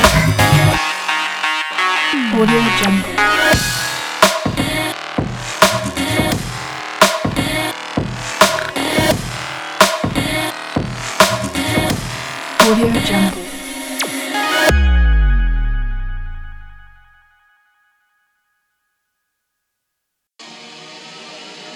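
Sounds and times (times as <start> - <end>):
dirt electro sport big beat music: 0.0 - 17.1.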